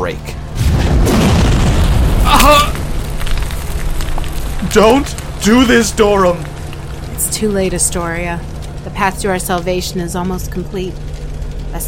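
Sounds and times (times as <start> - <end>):
speech: 0.0 - 0.4, 4.7 - 6.5, 7.3 - 11.1
fireball explosion blast: 0.5 - 5.4.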